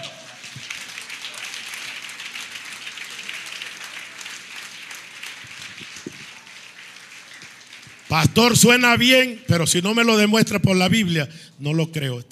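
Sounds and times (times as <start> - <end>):
audience applauding: 0.0 - 9.3
speech: 8.1 - 12.3.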